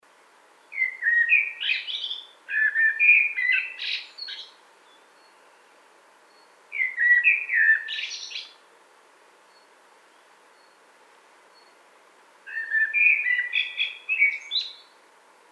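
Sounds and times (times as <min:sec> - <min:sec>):
Eurasian blackbird song phrases: 0:00.6 - 0:08.6, 0:09.5 - 0:10.8, 0:11.5 - 0:11.8, 0:12.4 - 0:15.0.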